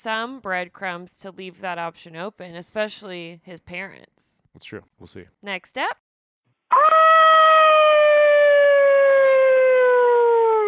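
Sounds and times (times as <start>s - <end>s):
speech: 0.0s - 6.0s
long howl: 6.8s - 10.6s.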